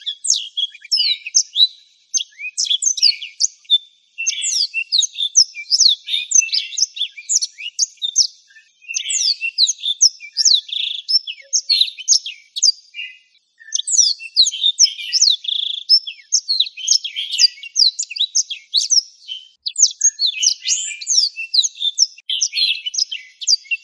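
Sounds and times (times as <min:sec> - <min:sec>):
black-throated canary twittering song: 0:00.0 - 0:23.8.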